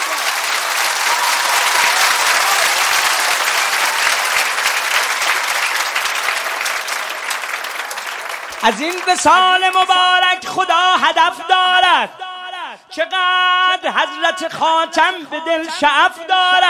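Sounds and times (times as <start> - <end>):
wedding guests clapping hard: 0.0 - 10.6
speech: 8.6 - 12.3, 13.0 - 16.6.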